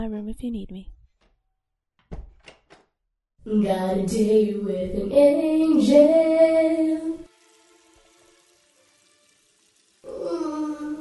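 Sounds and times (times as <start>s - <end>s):
speech: 0.0s - 1.0s, 3.4s - 7.3s
water running into a bath: 6.6s - 10.9s.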